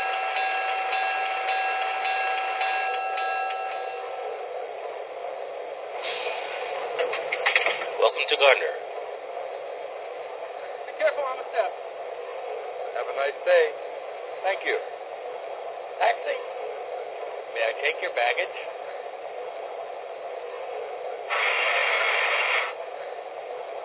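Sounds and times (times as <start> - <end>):
Budd trains: 0.0 - 23.8.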